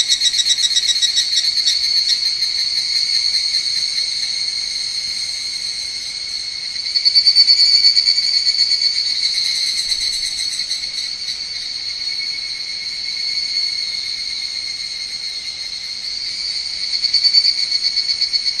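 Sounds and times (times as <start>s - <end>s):
Higurashi cicada call with high metallic trill: 0.0s - 18.5s.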